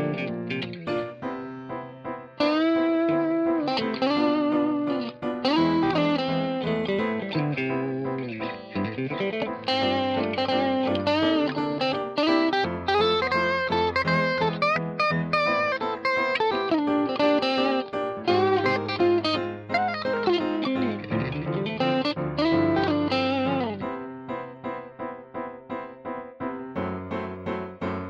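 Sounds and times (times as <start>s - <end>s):
second guitar: 0.0s - 28.0s.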